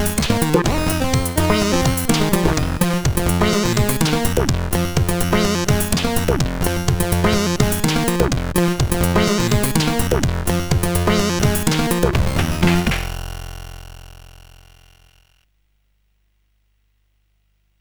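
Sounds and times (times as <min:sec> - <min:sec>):
main tune played on a CSG8580R5 sound chip: 0:00.0 - 0:13.7.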